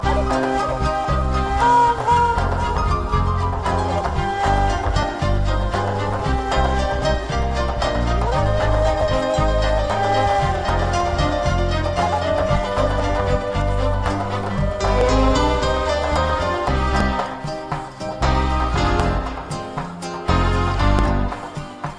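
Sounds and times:
lovely music: 0.0s - 21.9s.

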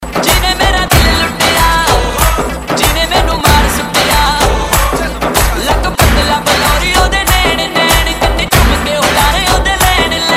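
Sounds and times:
dhol drum: 0.0s - 10.3s.

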